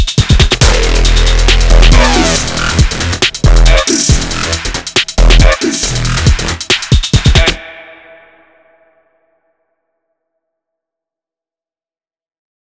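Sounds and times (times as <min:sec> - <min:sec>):
electronic jungle music made in Renoise: 0:00.0 - 0:09.0.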